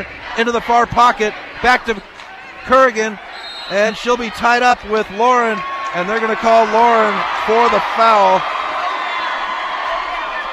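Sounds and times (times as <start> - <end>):
speech: 0.0 - 8.5
basketball crowd cheering and whooping: 3.2 - 10.5.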